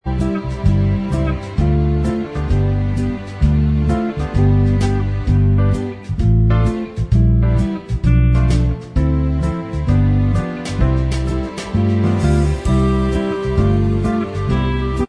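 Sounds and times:
instrumental music: 0.0 - 15.0.

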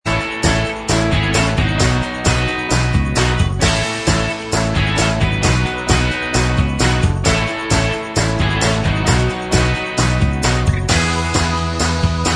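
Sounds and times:
instrumental music: 0.1 - 12.3.

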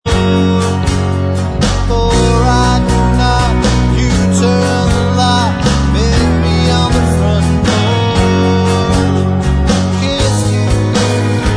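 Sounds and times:
backing vocals: 0.1 - 11.4.

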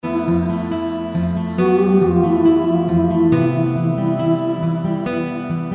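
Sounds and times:
backing vocals: 0.0 - 5.6.

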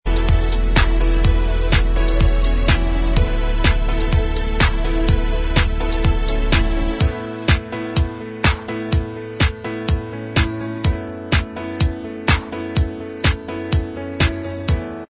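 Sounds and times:
instrumental music: 0.1 - 15.0.

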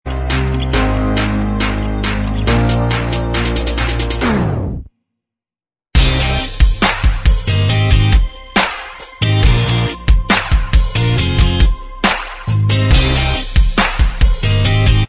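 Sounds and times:
instrumental music: 0.1 - 4.8, 6.0 - 15.0.

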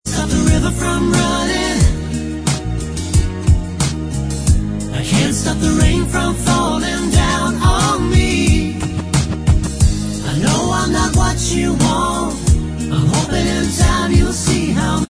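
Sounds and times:
backing vocals: 0.1 - 2.2, 4.9 - 9.2, 10.1 - 15.0
backing track: 0.1 - 15.0.

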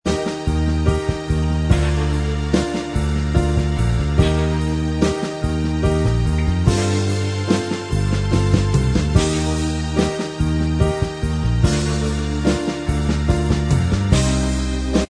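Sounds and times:
instrumental music: 0.1 - 15.0.

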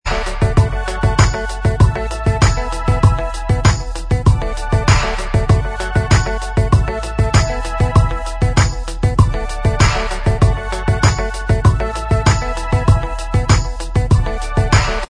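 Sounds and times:
instrumental music: 0.1 - 15.0.

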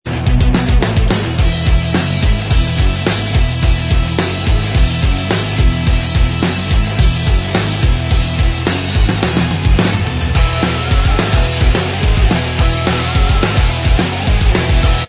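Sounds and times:
punked up instrumental backing track: 0.0 - 15.0.

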